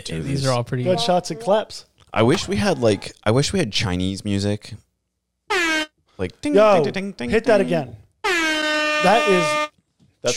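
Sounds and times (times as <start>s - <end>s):
speech: 0.0s - 4.9s, 6.2s - 8.0s, 9.0s - 9.6s
air horn sound effect: 5.5s - 5.9s, 8.2s - 9.7s.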